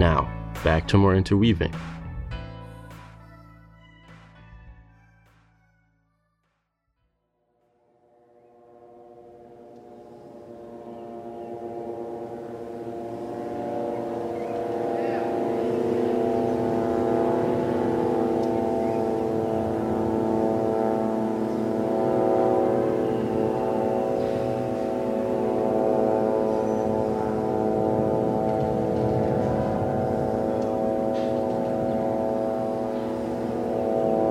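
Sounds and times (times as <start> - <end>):
speech: 0.0 - 2.0
Israeli military drone buzzing over the Gaza Strip: 7.7 - 34.2.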